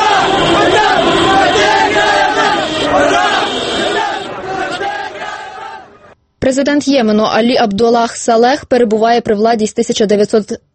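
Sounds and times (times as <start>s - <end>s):
large crowd of protesters chanting anti-government slogans: 0.0s - 6.2s
speech: 6.6s - 10.7s.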